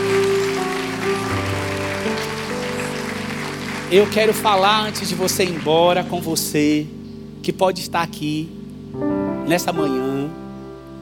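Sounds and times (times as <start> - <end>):
audience applauding: 0.0 - 6.4
speech: 3.9 - 10.4.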